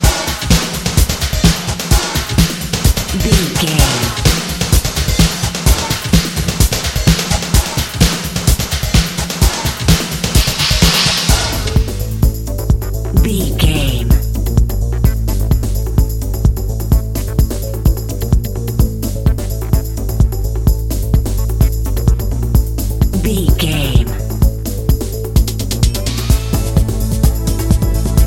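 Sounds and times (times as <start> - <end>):
energetic EDM workout dance music: 0.0 - 22.2, 23.0 - 28.2.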